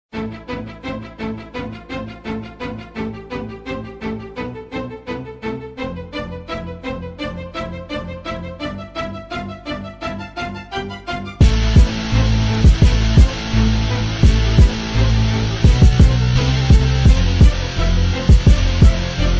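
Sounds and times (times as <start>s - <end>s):
hip hop beat: 11.4s - 19.3s.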